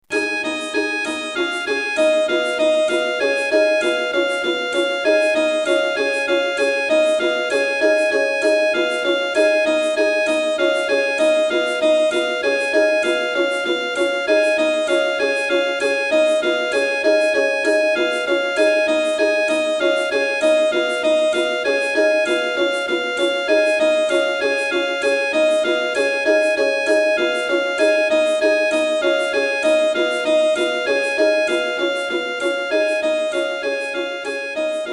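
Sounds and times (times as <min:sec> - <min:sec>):
Nzakara harp songs: 0:00.0 - 0:34.9.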